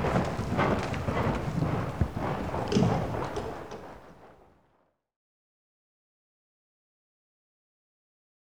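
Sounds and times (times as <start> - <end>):
one horse hoofbeats in an indoor school: 0.0 - 4.4.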